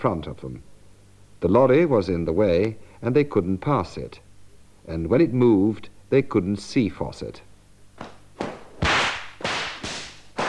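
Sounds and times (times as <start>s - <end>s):
speech: 0.0s - 0.7s, 1.4s - 4.2s, 4.8s - 8.1s
whip lash hitting a horse: 8.8s - 10.4s.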